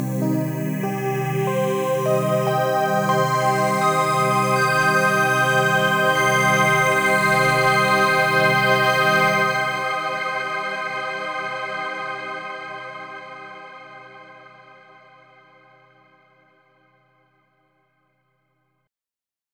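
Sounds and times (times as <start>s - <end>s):
Tone2 Icarus synthesizer: 0.0s - 15.1s.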